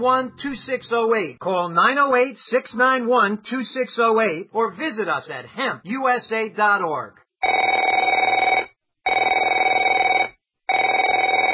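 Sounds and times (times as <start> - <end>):
speech: 0.0 - 8.0
telephone ringing: 7.4 - 11.5.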